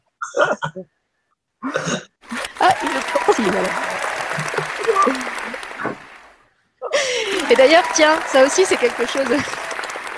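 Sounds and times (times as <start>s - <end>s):
speech: 0.6s - 1.0s, 1.6s - 2.1s, 3.4s - 5.2s, 7.5s - 9.6s
laughter: 2.3s - 6.2s, 6.8s - 10.1s
applause: 2.3s - 6.4s, 7.0s - 10.1s.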